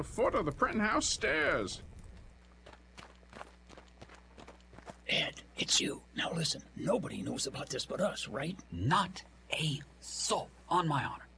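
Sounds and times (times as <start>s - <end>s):
speech: 0.0s - 1.9s, 5.1s - 11.2s
steady low hum: 0.0s - 11.3s
footsteps of people hurrying through deserted streets in a radio drama: 0.1s - 5.4s.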